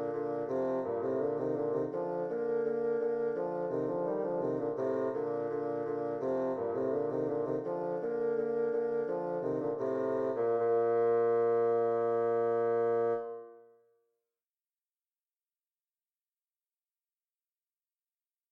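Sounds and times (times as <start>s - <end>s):
rondeau bassoon duet: 0.0s - 13.7s.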